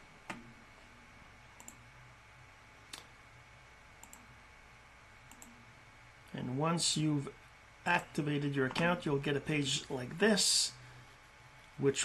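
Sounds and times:
quiet hum: 0.0s - 12.0s
mouse clicks while activating an online course account: 1.6s - 1.8s, 4.0s - 4.2s, 5.3s - 5.6s
speech: 6.5s - 10.8s, 11.8s - 12.0s.

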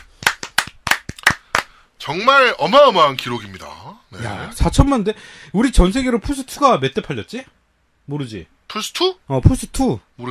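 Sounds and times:
hand clapping: 0.0s - 1.8s
speech: 2.0s - 10.3s.

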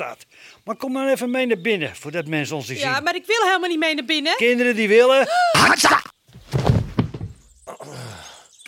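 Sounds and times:
speech: 0.0s - 6.1s
scuffle of softer knocks and thuds: 6.3s - 7.6s
blow to the head, dull heavy thunk: 6.4s - 7.5s.

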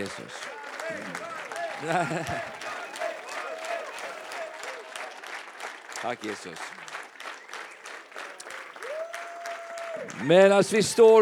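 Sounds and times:
speech: 0.0s - 2.6s, 6.0s - 6.8s, 10.0s - 11.2s
laughter: 0.0s - 4.6s
audience applause: 0.0s - 11.2s.

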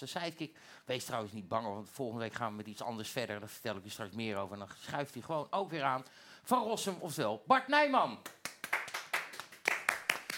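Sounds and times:
speech: 0.0s - 8.8s
hand clapping: 8.2s - 10.3s.

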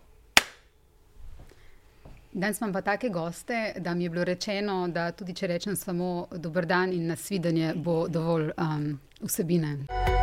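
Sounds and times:
film clapperboard snap: 0.4s - 0.7s
speech: 2.3s - 10.1s.

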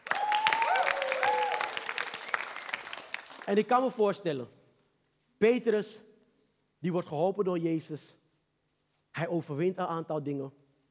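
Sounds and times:
audience applause: 0.0s - 3.6s
speech: 3.5s - 4.6s, 5.4s - 6.1s, 6.8s - 8.2s, 9.2s - 10.6s.

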